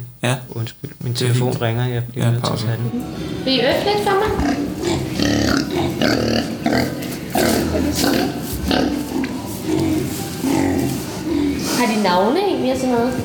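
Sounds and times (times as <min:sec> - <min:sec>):
speech: 0:00.2 - 0:11.0, 0:11.8 - 0:13.2
pigs grunting and snorting in a pen: 0:04.3 - 0:12.4.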